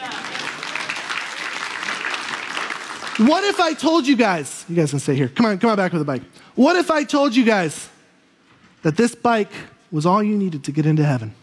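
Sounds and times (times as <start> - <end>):
audience applause: 0.0 - 3.5
speech: 3.2 - 7.9, 8.8 - 11.4.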